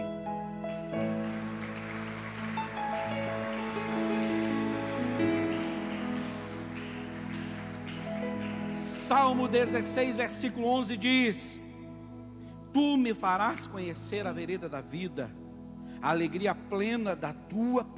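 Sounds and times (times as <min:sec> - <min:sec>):
audience applauding: 0:00.8 - 0:10.2
speech: 0:09.1 - 0:11.6, 0:12.8 - 0:15.4, 0:16.0 - 0:17.9.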